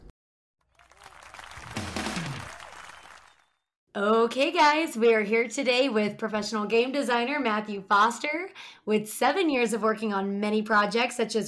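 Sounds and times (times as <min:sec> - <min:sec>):
applause: 0:00.6 - 0:03.7
whoops and cheering voices: 0:00.8 - 0:03.5
speech: 0:04.0 - 0:11.4.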